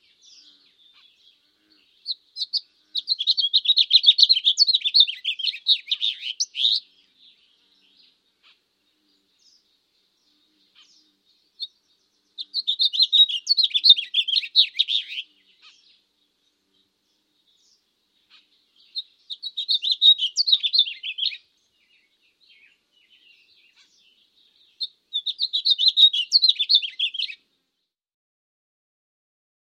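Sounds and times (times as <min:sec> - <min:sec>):
bird twittering: 0:00.2 - 0:07.0, 0:10.4 - 0:16.0, 0:17.5 - 0:27.4.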